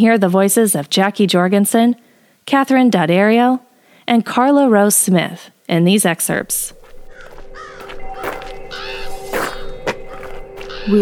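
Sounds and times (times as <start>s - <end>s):
speech: 0.0s - 6.8s
ravens calling: 6.2s - 10.9s
crows calling: 6.7s - 10.9s.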